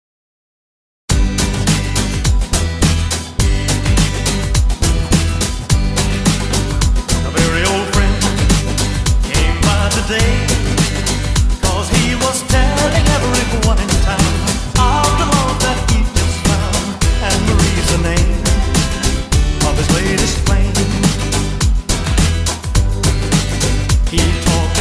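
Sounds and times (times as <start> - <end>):
shuffle dance remix: 1.1 - 24.7.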